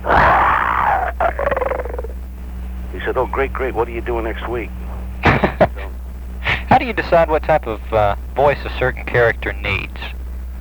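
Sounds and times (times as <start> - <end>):
person imitating a bear growl: 0.0 - 2.2
laughter: 0.9 - 2.2, 5.2 - 7.2
speech: 3.1 - 5.8, 6.7 - 10.2.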